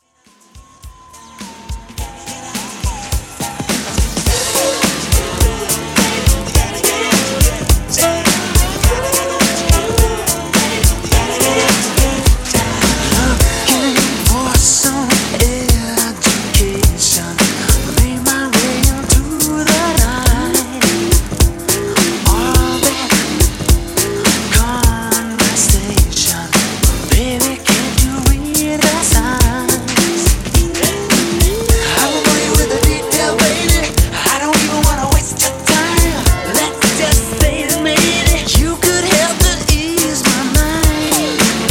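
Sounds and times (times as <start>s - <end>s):
90s drum beat: 0.6s - 41.6s.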